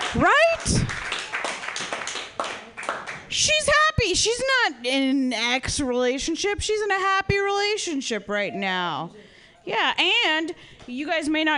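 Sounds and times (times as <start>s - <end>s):
audience applause: 0.0s - 3.3s
speech: 4.1s - 11.5s.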